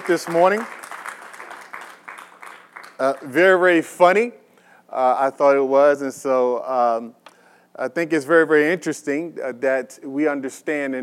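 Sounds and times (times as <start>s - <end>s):
speech: 0.0s - 0.8s, 3.0s - 7.2s, 7.8s - 11.0s
audience applause: 0.0s - 3.3s.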